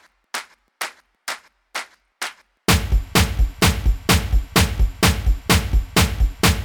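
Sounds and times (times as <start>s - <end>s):
drums: 2.7s - 6.6s.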